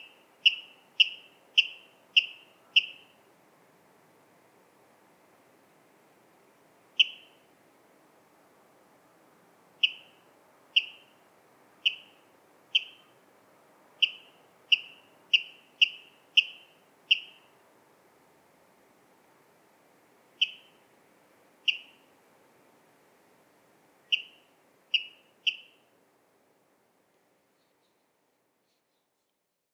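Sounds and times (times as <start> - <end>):
water rail calling: 0.0 - 3.1, 9.8 - 10.1, 11.9 - 12.2, 12.8 - 13.1, 14.0 - 17.4, 20.4 - 20.8, 21.7 - 22.0, 24.1 - 25.8.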